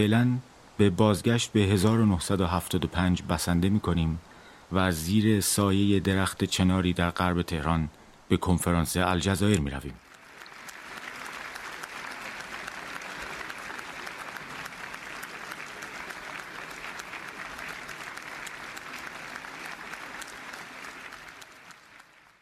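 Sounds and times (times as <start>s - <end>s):
speech: 0.0s - 10.0s
audience applauding in a conference hall: 10.0s - 22.4s.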